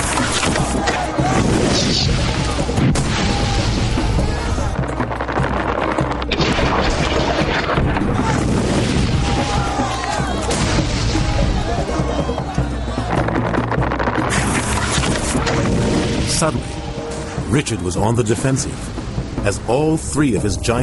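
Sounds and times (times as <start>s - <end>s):
heavy crashes: 0.0s - 17.5s
booming explosions: 0.6s - 12.2s, 12.9s - 17.5s
speech: 17.6s - 20.8s.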